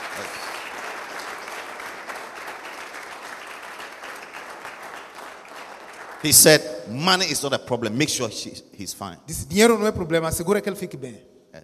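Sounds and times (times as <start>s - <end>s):
applause: 0.0s - 6.6s
speech: 6.2s - 11.3s.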